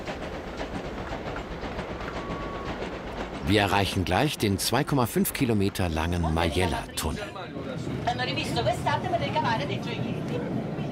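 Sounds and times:
train running on rails: 0.0s - 10.9s
speech: 3.5s - 10.5s.

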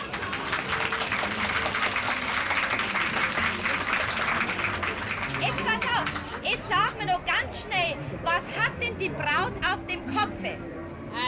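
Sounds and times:
crowd applauding: 0.0s - 7.1s
speech: 7.5s - 11.2s.

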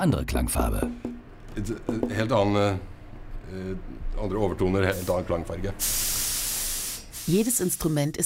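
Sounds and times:
speech: 0.0s - 2.9s, 3.5s - 6.3s, 7.3s - 8.2s
spray painting an instrument by hand: 4.8s - 8.2s.

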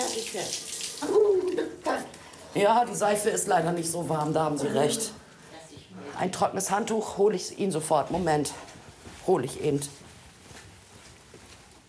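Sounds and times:
tap water running while a carer washes a person's hair: 0.0s - 1.8s
speech: 0.2s - 1.8s, 2.6s - 5.2s, 6.2s - 10.0s.

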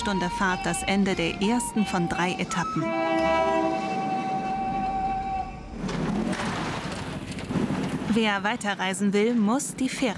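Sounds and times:
speech: 0.0s - 3.7s, 8.2s - 10.1s
rumbling clattering rail noise: 0.0s - 10.1s
train horn: 0.2s - 6.0s.

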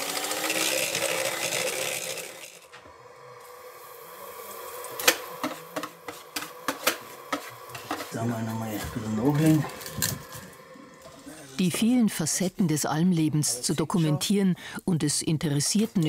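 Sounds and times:
electric mixer whipping egg whites: 0.0s - 11.6s
speech: 8.2s - 10.2s, 11.6s - 16.0s.

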